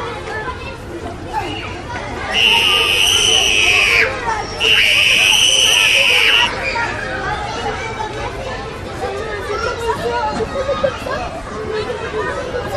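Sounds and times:
children chattering and shouting in a school playground at recess: 0.0 - 12.7
shrill ringing tone: 2.3 - 6.5.

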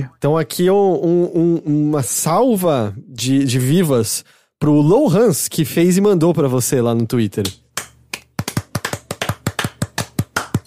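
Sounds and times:
speech: 0.0 - 7.6
hand clapping: 7.4 - 10.6.

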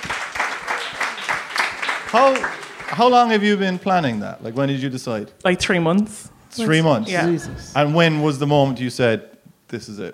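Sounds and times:
audience applause: 0.0 - 4.2
speech: 2.1 - 10.1.

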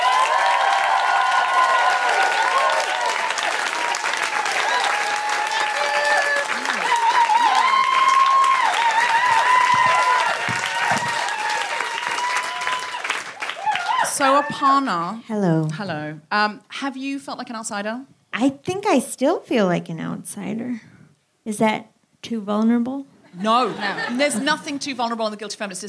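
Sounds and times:
crowd applauding: 0.0 - 14.5
speech: 14.2 - 20.9, 21.5 - 25.8
laughter: 23.3 - 24.8.

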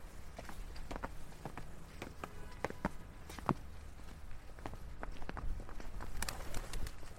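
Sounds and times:
footsteps walking through a gateway and up steps near Shaftesbury Avenue in London: 0.0 - 6.1
constant rumble of traffic on Shaftesbury Avenue in London: 0.0 - 7.1.

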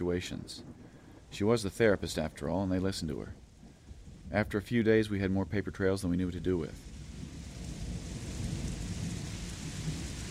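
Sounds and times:
speech: 0.0 - 3.4, 4.3 - 6.9
heavy rain pouring down outside: 0.0 - 10.3.

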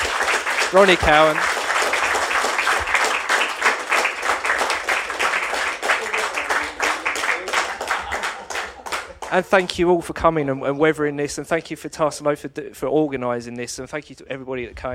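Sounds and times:
audience applause: 0.0 - 9.8
speech: 0.7 - 1.5, 9.3 - 14.9
laughter: 5.8 - 10.9.

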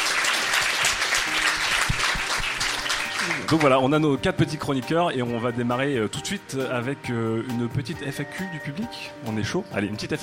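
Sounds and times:
audience applause: 0.0 - 3.8
speech: 3.5 - 10.2.

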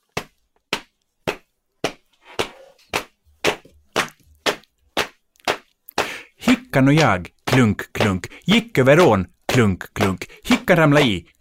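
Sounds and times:
hands clapping a rhythmic beat: 2.9 - 11.3
speech: 6.8 - 11.3.

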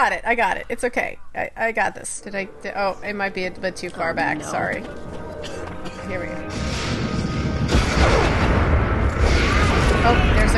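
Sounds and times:
speech: 0.0 - 6.9, 10.0 - 10.5
bombs exploding, possibly tear gas canisters being fired: 6.1 - 10.5.

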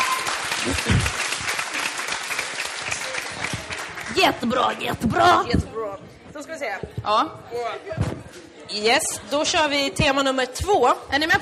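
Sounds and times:
audience applause: 0.0 - 4.6
speech: 0.6 - 1.2, 4.2 - 11.3.

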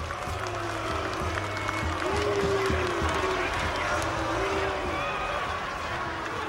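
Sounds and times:
audience booing loudly: 0.0 - 6.4.

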